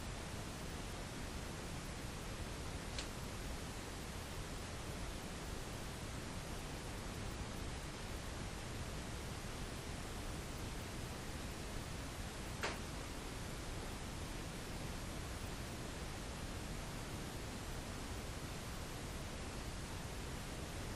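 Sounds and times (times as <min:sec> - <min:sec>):
static noise in a tattoo shop: 0:00.0 - 0:20.9.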